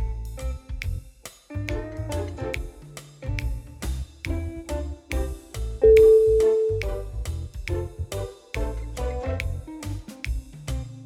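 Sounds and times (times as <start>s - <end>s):
sneaky jazz music: 1.6s - 10.0s.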